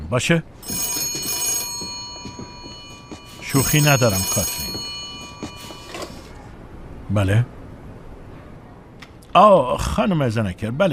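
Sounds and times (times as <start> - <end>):
speech: 0.1 - 1.0, 3.5 - 4.7, 7.1 - 7.6, 9.3 - 10.9
telephone ringing with a bright shrill electronic tone: 0.6 - 6.5.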